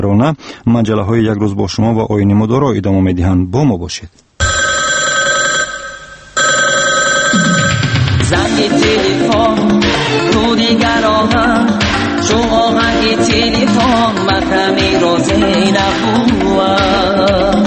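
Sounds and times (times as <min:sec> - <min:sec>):
speech: 0:00.0 - 0:04.3, 0:08.8 - 0:17.6
telephone ringing: 0:04.4 - 0:08.6.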